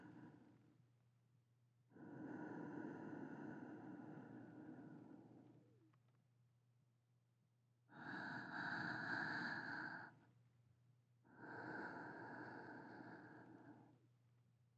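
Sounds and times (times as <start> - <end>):
sleeping breathing: 2.0 - 5.7, 7.9 - 10.2, 11.3 - 14.0.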